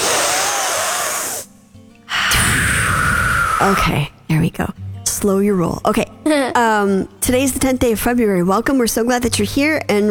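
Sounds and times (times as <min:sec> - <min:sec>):
deep breath taken together by a couple of people: 0:00.0 - 0:01.5, 0:02.1 - 0:03.8
speech: 0:03.6 - 0:10.0.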